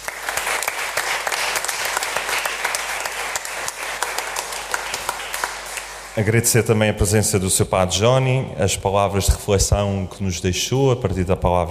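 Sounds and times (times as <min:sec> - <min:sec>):
round of applause: 0:00.0 - 0:06.3
speech: 0:06.2 - 0:11.7.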